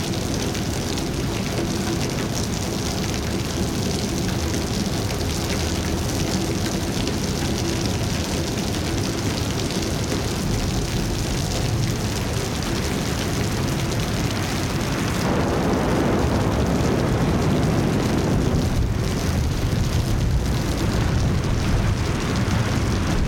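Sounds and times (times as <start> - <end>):
storm in Japan: 0.0 - 23.2.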